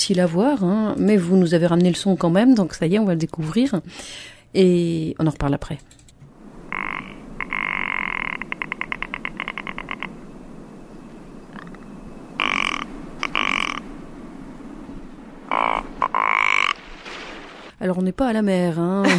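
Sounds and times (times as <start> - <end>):
speech: 0.0 - 6.0, 18.0 - 19.1
constant low rush of wind on a windy ridge: 6.3 - 17.8
harsh croaking calls of a threatened Alpine bird: 6.4 - 17.7.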